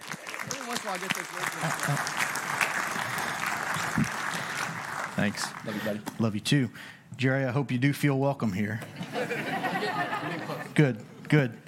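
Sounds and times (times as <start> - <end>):
church gathering audience clapping: 0.0 - 6.2
speech: 0.8 - 2.6, 3.8 - 4.4, 5.2 - 11.6
laughter: 1.4 - 2.3, 8.9 - 10.8.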